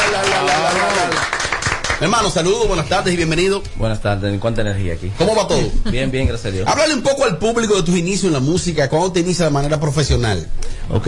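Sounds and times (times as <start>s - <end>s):
group applauding a guest: 0.0s - 2.6s
speech: 2.0s - 11.0s.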